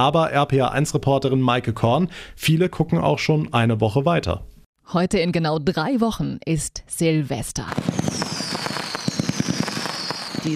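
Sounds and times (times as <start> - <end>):
speech: 0.0 - 8.2
fireworks exploding: 7.7 - 10.5.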